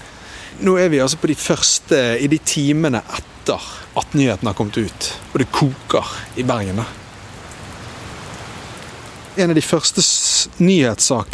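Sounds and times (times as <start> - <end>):
rain falling: 0.0 - 11.3
speech: 0.6 - 7.0, 9.4 - 11.3.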